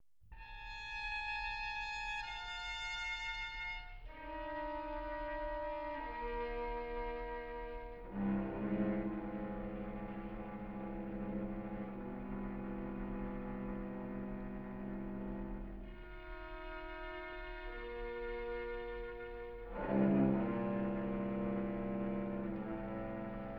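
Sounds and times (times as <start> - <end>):
string quartet in A minor: 0.4 - 23.5.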